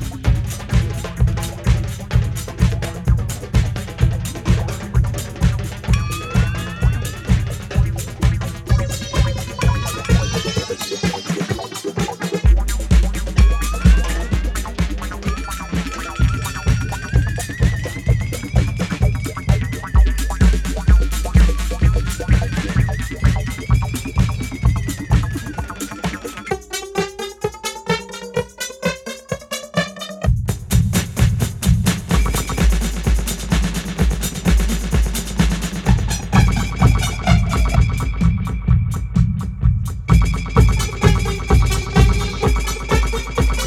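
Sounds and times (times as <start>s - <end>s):
disco drum implosion: 0.0s - 43.6s.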